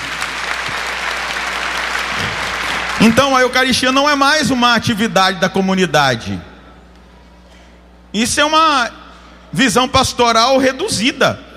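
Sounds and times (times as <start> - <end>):
church congregation clapping during a Catholic service: 0.0 - 4.2
speech: 3.0 - 6.5, 8.1 - 11.4.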